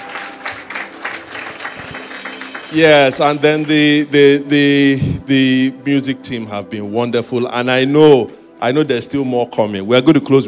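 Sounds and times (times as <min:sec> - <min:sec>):
audience applause: 0:00.0 - 0:04.0
speech: 0:02.7 - 0:10.4.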